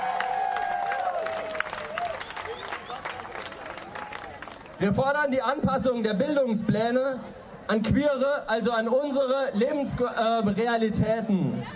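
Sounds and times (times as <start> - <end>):
audience applause: 0.0 - 4.8
speech: 4.8 - 11.7.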